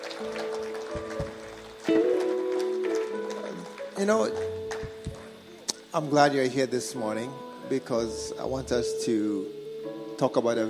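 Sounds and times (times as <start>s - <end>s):
audience clapping: 0.0s - 5.4s
low sustained musical tones: 0.0s - 10.6s
speech: 0.2s - 0.5s, 4.0s - 4.5s, 6.0s - 9.6s, 10.2s - 10.6s.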